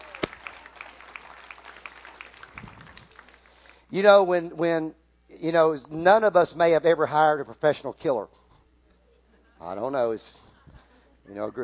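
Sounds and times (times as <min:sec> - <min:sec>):
audience clapping: 0:00.0 - 0:04.0
speech: 0:03.9 - 0:08.4, 0:09.6 - 0:10.4, 0:11.3 - 0:11.6.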